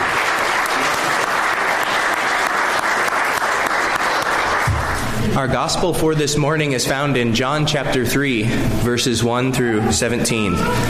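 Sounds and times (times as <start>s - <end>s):
round of applause: 0.0s - 5.3s
speech: 5.4s - 10.8s.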